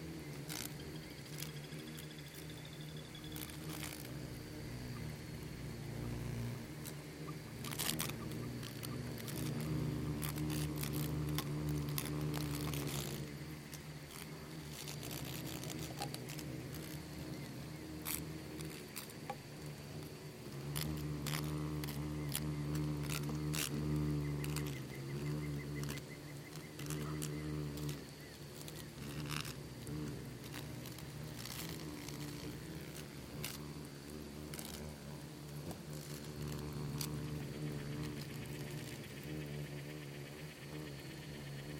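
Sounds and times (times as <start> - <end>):
insect swarm low drone: 0.0 - 41.7.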